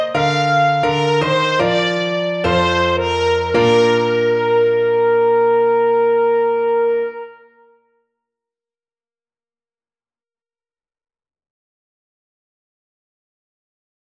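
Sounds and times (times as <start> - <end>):
fast trumpet march: 0.0 - 7.7.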